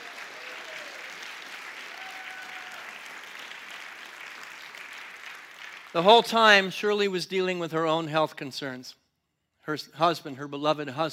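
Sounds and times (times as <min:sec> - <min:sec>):
audience applause: 0:00.0 - 0:06.1
speech: 0:06.0 - 0:09.0, 0:09.6 - 0:11.1.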